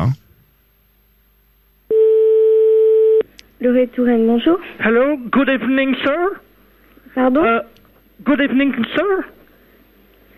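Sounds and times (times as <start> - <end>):
telephone ringing tone: 1.9 - 3.2
speech: 3.6 - 6.4, 7.1 - 9.4.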